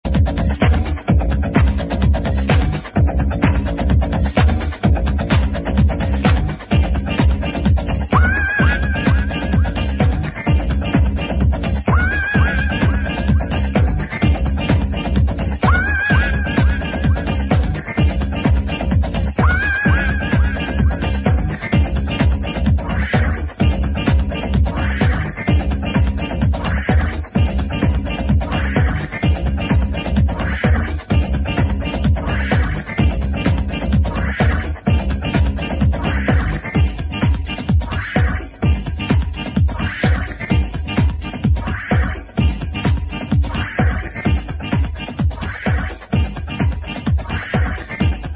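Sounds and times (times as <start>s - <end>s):
cavern-like bassline: 0.0s - 48.3s.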